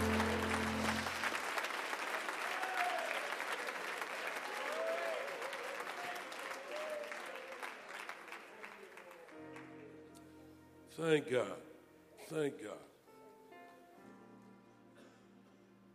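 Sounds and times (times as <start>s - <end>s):
audience clapping hands: 0.0s - 9.9s
speech: 11.0s - 11.7s, 12.3s - 12.9s.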